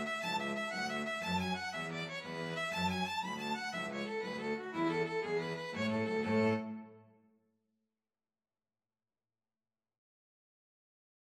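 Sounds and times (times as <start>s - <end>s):
two violins playing an Irish jig medley: 0.0s - 7.0s.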